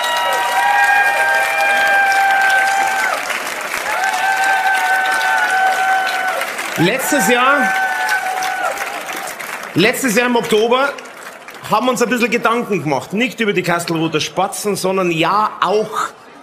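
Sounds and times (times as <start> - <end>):
audience applause: 0.0 - 12.8
speech: 6.8 - 7.8, 9.8 - 11.0, 11.7 - 16.2.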